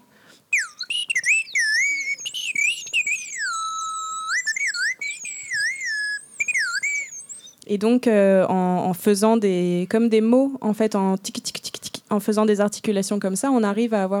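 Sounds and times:
small slide whistle mimicking birdsong: 0.5s - 7.6s
speech: 7.7s - 14.1s.

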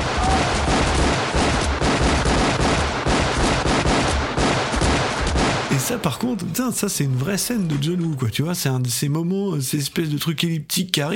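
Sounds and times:
rapid gunfire from a film scene: 0.0s - 8.3s
speech: 5.9s - 11.1s.

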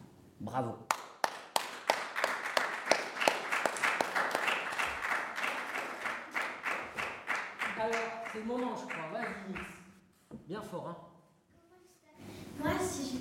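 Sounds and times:
speech: 0.4s - 0.9s, 8.4s - 9.8s, 10.4s - 11.1s
children's audience applauding: 0.9s - 9.7s.

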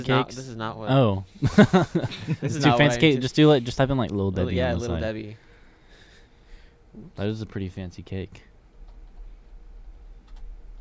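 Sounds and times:
speech: 0.0s - 5.4s, 7.0s - 8.5s
laughter: 1.4s - 3.0s
computer mouse clicks: 10.2s - 10.7s.

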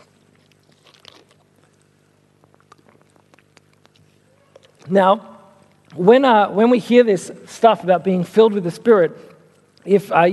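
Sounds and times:
sips and swallows of water: 0.0s - 4.9s
low steady hum: 0.0s - 10.3s
speech: 4.9s - 5.3s, 6.0s - 10.3s.

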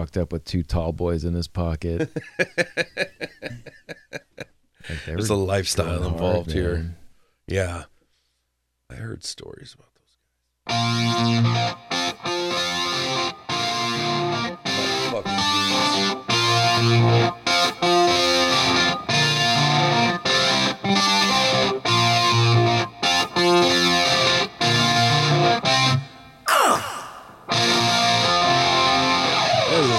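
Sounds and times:
speech: 0.0s - 3.8s, 4.9s - 7.9s, 8.9s - 9.9s, 10.9s - 11.8s
laughter: 2.0s - 6.6s
finger-picked distorted guitar riff: 10.7s - 26.1s, 27.1s - 29.9s.

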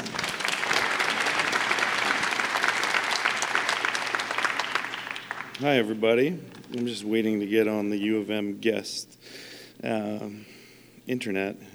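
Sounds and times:
audience applause: 0.0s - 6.0s
speech: 5.6s - 10.5s, 11.1s - 11.7s.

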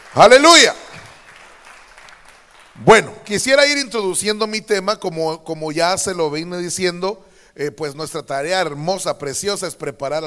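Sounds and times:
crowd clapping: 0.0s - 3.6s
speech: 0.1s - 0.8s, 2.8s - 10.2s.

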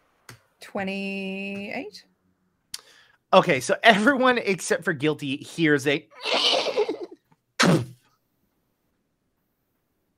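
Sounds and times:
speech: 0.6s - 2.1s, 3.3s - 6.5s
person imitating horse collapsing groan: 6.2s - 7.2s.

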